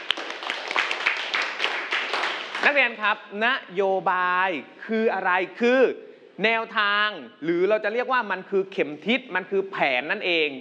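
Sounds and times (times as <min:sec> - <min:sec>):
students clapping in a classroom: 0:00.0 - 0:02.8
speech: 0:02.6 - 0:10.5.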